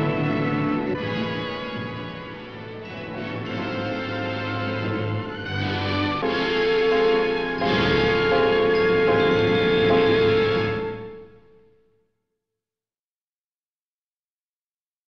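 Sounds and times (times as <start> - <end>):
music: 0.0 - 12.0.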